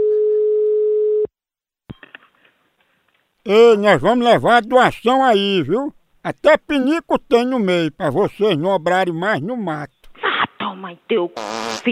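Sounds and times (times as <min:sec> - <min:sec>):
buzzing telephone tone while placing a call: 0:00.0 - 0:01.3
speech: 0:03.4 - 0:10.0, 0:10.8 - 0:11.8.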